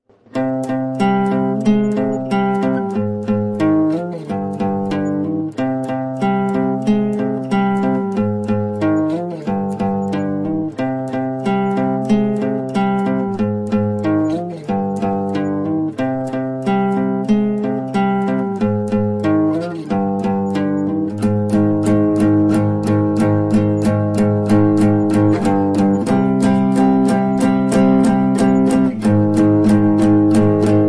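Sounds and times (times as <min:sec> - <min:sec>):
guitar: 0:00.0 - 0:30.8.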